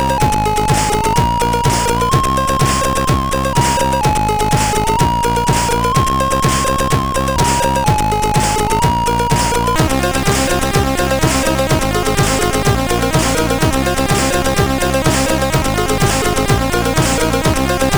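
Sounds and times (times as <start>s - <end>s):
chiptune music on SID CSG8580R5 chip: 0.0s - 17.9s.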